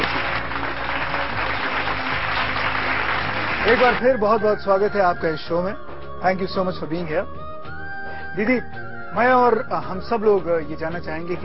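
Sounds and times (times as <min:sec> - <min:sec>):
studio audience applauding a guest on a talk show: 0:00.0 - 0:04.0
speech: 0:03.6 - 0:07.4, 0:08.4 - 0:11.4.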